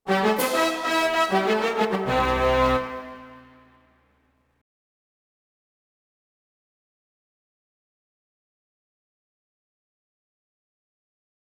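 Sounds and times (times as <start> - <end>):
mission success music: 0.1 - 3.8.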